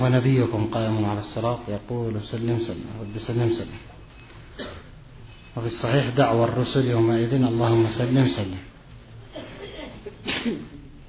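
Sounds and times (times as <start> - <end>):
speech: 0.0 - 3.9, 5.6 - 8.7, 10.2 - 10.7
sneeze: 9.3 - 10.9.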